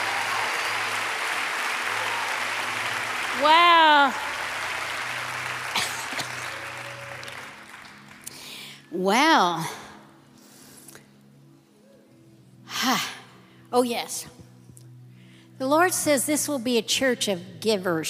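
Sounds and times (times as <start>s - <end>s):
audience clapping hands: 0.0s - 8.6s
speech: 3.4s - 4.3s, 8.9s - 9.8s, 13.7s - 14.4s, 15.6s - 18.0s.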